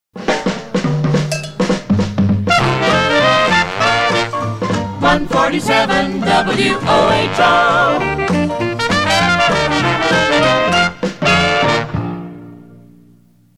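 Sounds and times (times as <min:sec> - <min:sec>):
dixieland jazz: 0:01.1 - 0:12.7.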